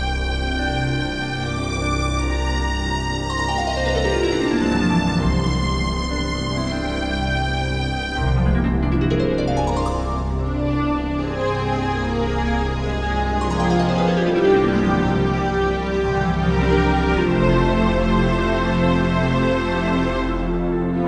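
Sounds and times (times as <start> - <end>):
orchestral music: 0.0 - 21.0.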